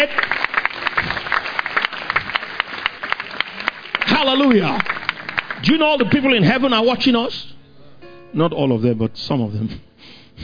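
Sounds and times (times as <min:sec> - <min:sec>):
speech: 0:00.0 - 0:00.3, 0:04.2 - 0:05.0, 0:05.6 - 0:07.6, 0:08.3 - 0:10.4
audience clapping: 0:00.0 - 0:06.7.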